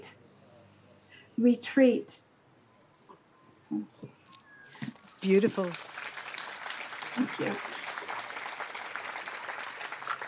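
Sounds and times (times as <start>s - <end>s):
speech: 1.4s - 2.2s, 3.7s - 4.2s, 5.2s - 6.0s, 7.2s - 7.8s
applause: 4.7s - 10.2s.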